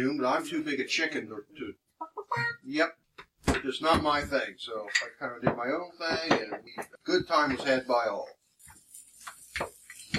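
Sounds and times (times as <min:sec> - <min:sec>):
speech: 0:00.0 - 0:08.4, 0:09.6 - 0:10.1
food sizzling while cooking: 0:05.9 - 0:10.1.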